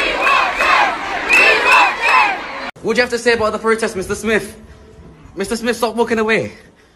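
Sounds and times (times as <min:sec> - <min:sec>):
Pimlico Academy students chanting at a protest: 0:00.0 - 0:02.7
students cheering at a protest: 0:00.0 - 0:02.7
speech: 0:02.8 - 0:04.8, 0:05.4 - 0:06.7.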